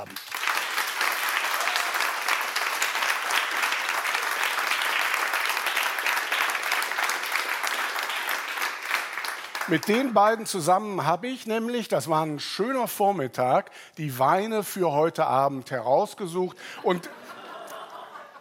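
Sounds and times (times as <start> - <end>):
audience applause: 0.0 - 10.4
speech: 9.7 - 17.2
laughter: 16.8 - 18.3.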